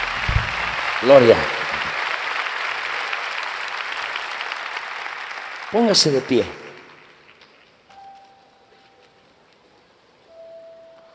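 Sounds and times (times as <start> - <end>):
audience applauding: 0.0 - 7.8
speech: 1.0 - 1.6, 5.7 - 6.6.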